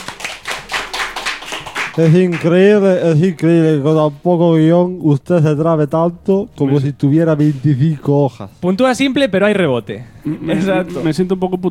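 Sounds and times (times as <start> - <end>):
game-show studio audience clapping: 0.0 - 3.0
speech: 2.0 - 11.7.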